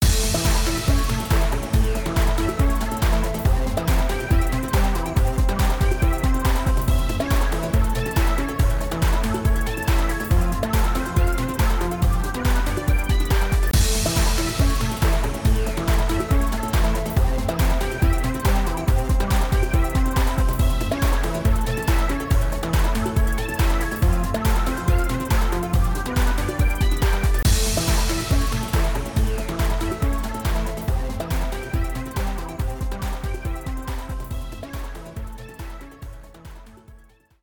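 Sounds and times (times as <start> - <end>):
space music: 0.0 - 36.8.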